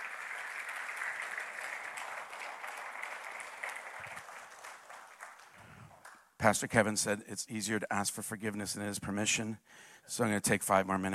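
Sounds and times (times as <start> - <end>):
audience hand clapping: 0.0 - 6.3
speech: 6.4 - 11.1.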